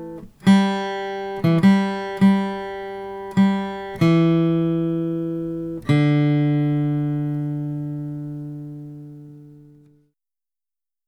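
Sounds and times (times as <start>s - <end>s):
folk melody: 0.0s - 9.9s.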